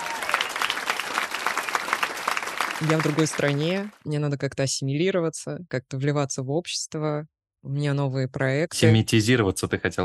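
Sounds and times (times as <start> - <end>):
audience applause: 0.0 - 3.9
speech: 2.8 - 10.0.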